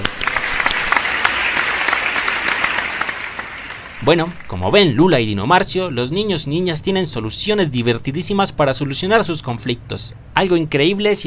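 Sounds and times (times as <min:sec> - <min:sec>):
audience applause: 0:00.0 - 0:04.7
speech: 0:04.0 - 0:11.2.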